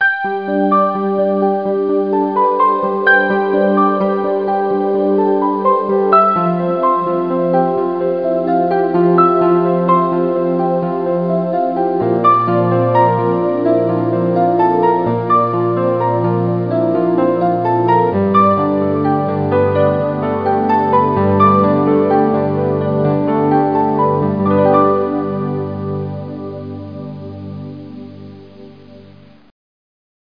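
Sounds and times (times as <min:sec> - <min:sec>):
mellow music: 0:00.0 - 0:29.5.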